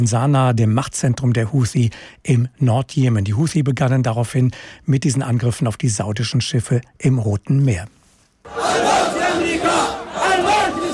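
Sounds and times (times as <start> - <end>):
speech: 0.0 - 9.5
large crowd chanting political slogans: 8.5 - 10.9.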